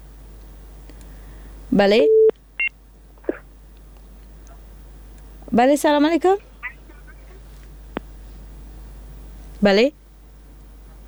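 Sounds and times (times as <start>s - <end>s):
speech: 1.7s - 2.2s, 5.6s - 6.5s, 9.6s - 10.0s
phone line beeps as a call drops from a technical fault: 2.0s - 2.3s.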